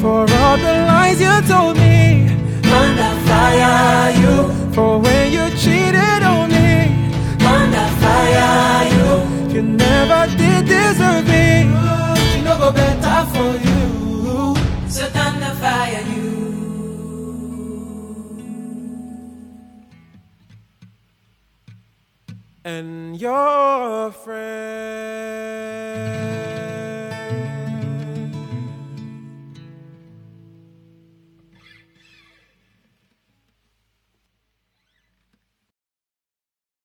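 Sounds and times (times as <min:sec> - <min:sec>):
acoustic guitar: 0:00.0 - 0:35.6.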